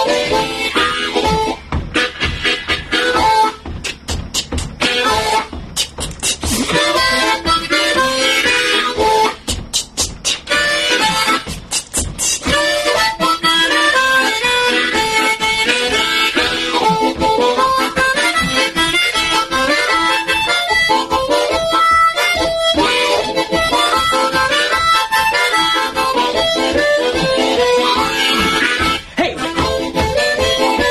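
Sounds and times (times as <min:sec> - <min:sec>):
diatonic harmonica in harmonic minor A tuning: 0:00.0 - 0:30.8.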